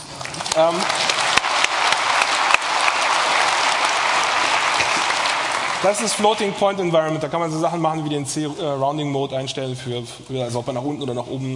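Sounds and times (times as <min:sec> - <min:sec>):
audience applause: 0:00.0 - 0:06.8
speech: 0:00.6 - 0:01.1, 0:05.8 - 0:11.5.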